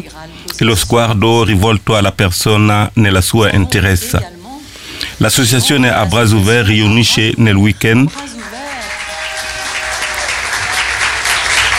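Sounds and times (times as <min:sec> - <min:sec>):
speech: 0:00.0 - 0:04.4, 0:05.2 - 0:08.3
audience applauding the association À Bras Ouverts: 0:08.0 - 0:11.7.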